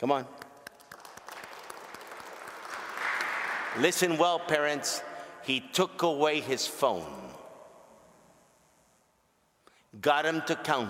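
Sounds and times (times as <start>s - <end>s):
speech: 0.0s - 0.4s, 3.7s - 7.4s, 10.0s - 10.8s
audience applause: 0.8s - 3.8s.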